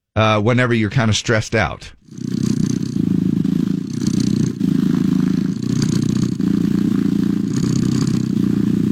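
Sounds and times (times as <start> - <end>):
speech: 0.2 - 2.3
cat purring recording: 1.9 - 8.8.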